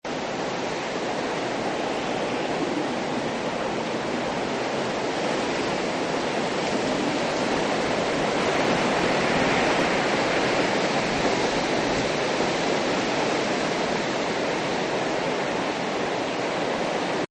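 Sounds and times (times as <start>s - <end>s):
wind: 0.0s - 17.2s.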